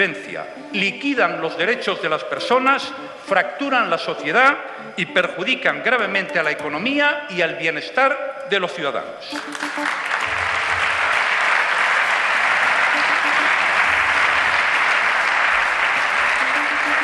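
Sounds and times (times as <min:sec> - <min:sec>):
speech: 0:00.0 - 0:10.6
applause in a parliament chamber: 0:09.3 - 0:17.0.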